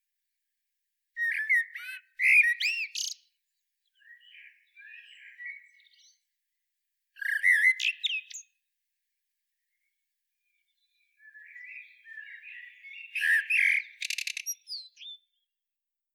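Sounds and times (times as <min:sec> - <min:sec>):
common blackbird singing: 0:01.2 - 0:03.3, 0:03.9 - 0:06.2, 0:07.2 - 0:08.6, 0:10.6 - 0:15.4.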